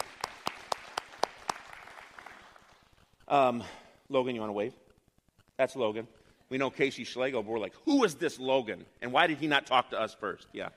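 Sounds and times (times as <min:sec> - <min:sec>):
audience clapping: 0:00.0 - 0:02.9
speech: 0:03.3 - 0:04.8, 0:05.6 - 0:10.7.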